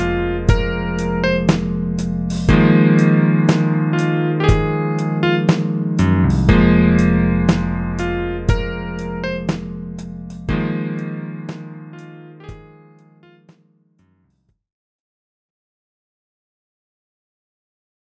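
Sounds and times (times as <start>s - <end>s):
dry jazzy music: 0.0s - 12.8s.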